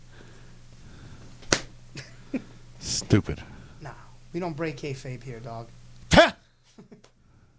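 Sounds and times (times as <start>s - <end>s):
low steady hum: 0.0s - 7.5s
hand smacking a thigh: 1.4s - 1.7s
speech: 2.0s - 3.5s, 4.4s - 5.8s.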